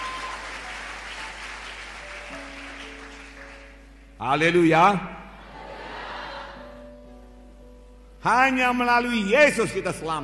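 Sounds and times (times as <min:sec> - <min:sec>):
audience applause: 0:00.0 - 0:03.8
speech: 0:04.2 - 0:05.2, 0:08.2 - 0:10.2.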